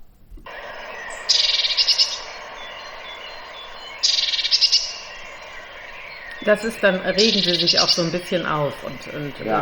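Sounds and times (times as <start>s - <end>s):
bird calling: 0.4s - 9.5s
speech: 6.4s - 9.5s.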